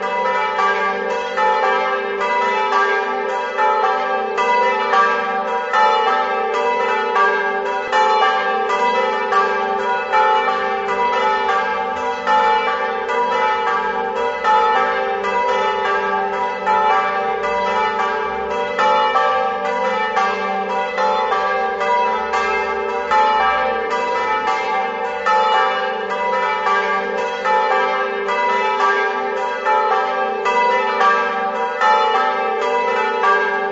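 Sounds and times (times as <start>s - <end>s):
bells: 0.0s - 33.7s.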